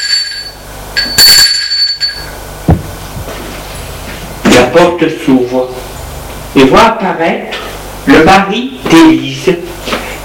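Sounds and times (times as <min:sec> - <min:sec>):
doorbell ringing: 0:00.0 - 0:02.4
dull thump: 0:02.6 - 0:03.3
speech: 0:04.7 - 0:05.9, 0:06.6 - 0:09.7.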